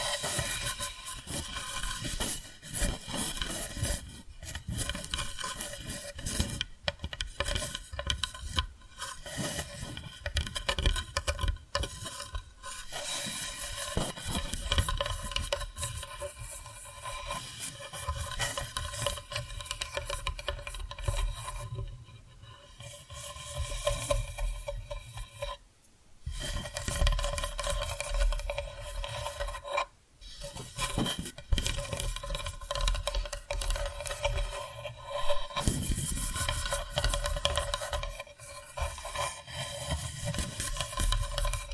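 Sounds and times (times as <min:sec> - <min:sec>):
tapping and scratching on wood: 0:00.0 - 0:25.6, 0:26.3 - 0:41.7.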